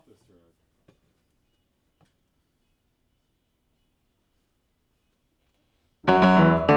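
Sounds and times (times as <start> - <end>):
piano: 6.0 - 6.7.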